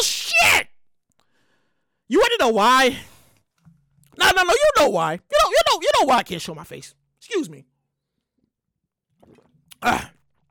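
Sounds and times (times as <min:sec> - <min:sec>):
speech: 0:00.0 - 0:00.7, 0:02.1 - 0:03.1, 0:04.2 - 0:07.7, 0:09.3 - 0:10.1
person sipping water: 0:08.0 - 0:10.4.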